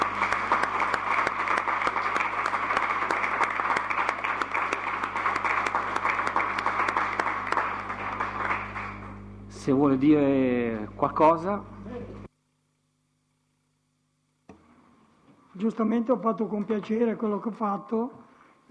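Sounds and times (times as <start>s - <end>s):
sustained crowd applause: 0.0s - 9.3s
low constant hum: 0.0s - 18.6s
speech: 9.6s - 11.7s, 15.7s - 18.6s.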